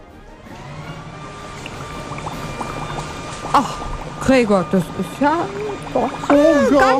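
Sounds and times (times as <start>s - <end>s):
motorized leaf blower roaring: 0.0s - 3.4s
garden hose water spray hissing and splattering: 0.6s - 6.9s
speech: 3.5s - 6.9s.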